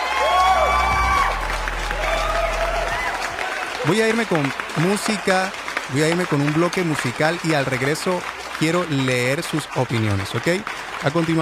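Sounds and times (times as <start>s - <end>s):
applause: 0.0s - 11.4s
speech: 3.8s - 11.4s.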